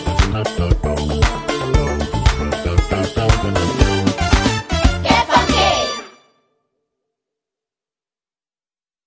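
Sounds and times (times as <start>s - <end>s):
funk music with vocals: 0.0s - 6.0s.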